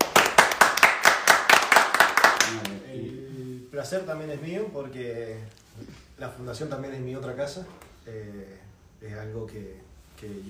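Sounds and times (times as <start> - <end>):
clapping applause: 0.0 - 2.8
speech: 3.8 - 10.4.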